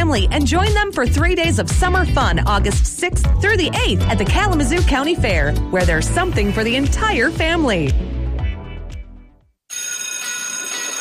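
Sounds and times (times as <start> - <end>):
speech: 0.1 - 8.1
school bell ringing: 9.7 - 10.9.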